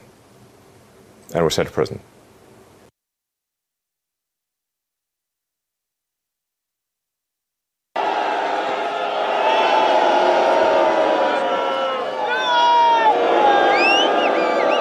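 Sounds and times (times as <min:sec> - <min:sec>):
speech: 0:01.3 - 0:02.2
crowd booing: 0:08.0 - 0:14.8.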